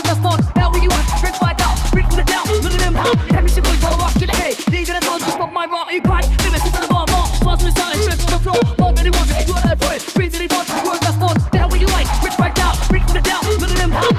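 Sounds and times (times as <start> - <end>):
dirty phonk music: 0.0 - 14.1.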